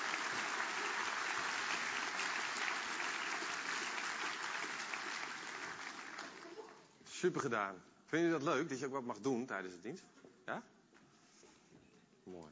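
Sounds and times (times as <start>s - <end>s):
crowd applause for the children: 0.0s - 6.8s
speech: 7.2s - 10.8s, 12.3s - 12.5s.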